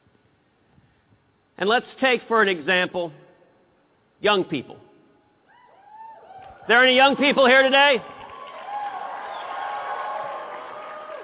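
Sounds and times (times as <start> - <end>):
speech: 1.6 - 3.2, 4.2 - 4.9, 6.7 - 8.1
conference crowd cheering: 5.6 - 11.2.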